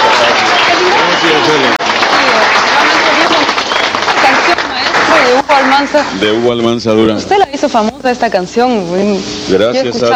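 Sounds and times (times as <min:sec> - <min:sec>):
audience applause: 0:00.0 - 0:06.1
speech: 0:05.6 - 0:10.1.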